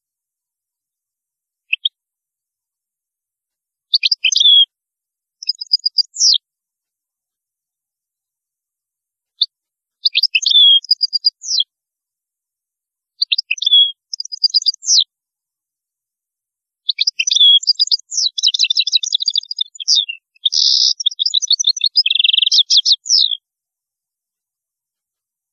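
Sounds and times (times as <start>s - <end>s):
European goldfinch song: 1.6s - 2.0s, 3.8s - 4.7s, 5.3s - 6.4s, 9.3s - 11.7s, 13.1s - 15.1s, 16.8s - 23.4s.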